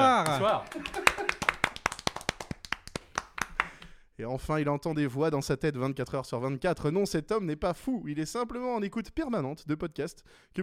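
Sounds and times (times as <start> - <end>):
laughter: 0.0 - 1.6
hands clapping: 0.0 - 4.0
speech: 0.3 - 1.4, 4.2 - 10.6.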